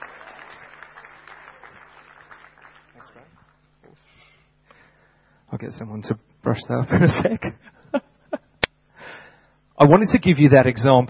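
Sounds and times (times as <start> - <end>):
audience clapping: 0.0 - 3.8
speech: 3.0 - 4.2, 5.5 - 8.0, 9.8 - 11.0.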